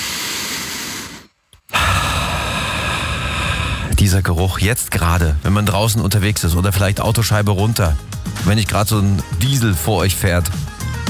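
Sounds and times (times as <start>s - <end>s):
deep inhale through the nose: 0.0s - 4.2s
speech: 4.0s - 10.8s.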